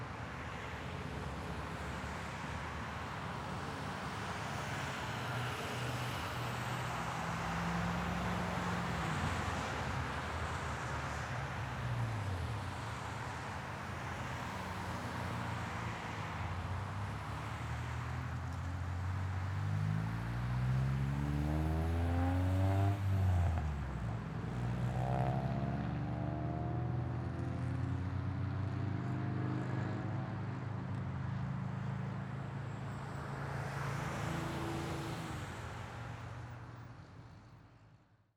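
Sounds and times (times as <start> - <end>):
busy road traffic: 0.0 - 37.7.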